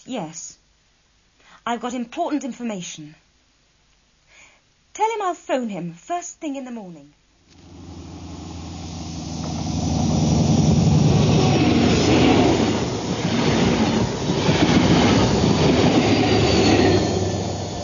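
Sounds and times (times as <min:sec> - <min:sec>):
speech: 0:00.0 - 0:00.6, 0:01.6 - 0:03.2, 0:05.0 - 0:07.8
high-speed train passing at 125 mph: 0:07.6 - 0:17.8.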